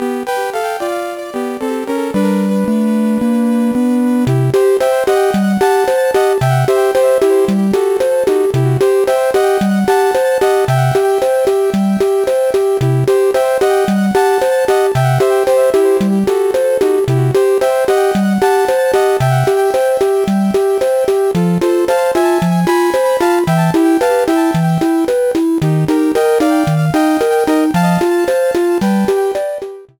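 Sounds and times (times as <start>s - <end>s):
underwater theme music: 0.0s - 29.9s.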